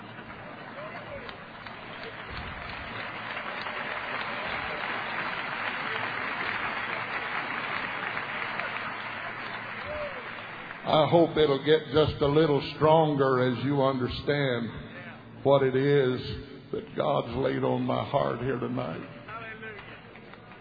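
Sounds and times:
courtesy applause from audience: 0.0s - 11.6s
speech: 10.9s - 14.8s, 15.4s - 19.2s.

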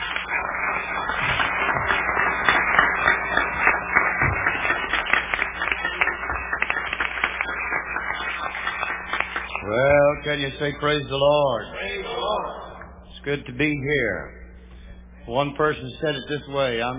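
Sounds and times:
audience hand clapping: 0.0s - 10.8s
speech: 10.3s - 12.0s, 13.2s - 14.4s, 15.2s - 16.9s.

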